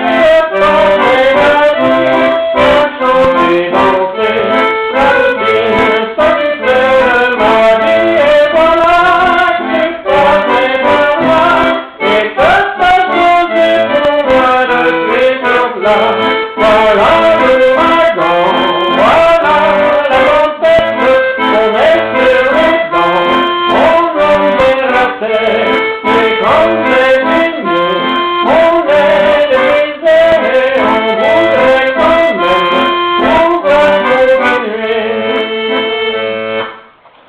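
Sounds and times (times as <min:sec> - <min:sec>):
accordion waltz: 0:00.0 - 0:37.0.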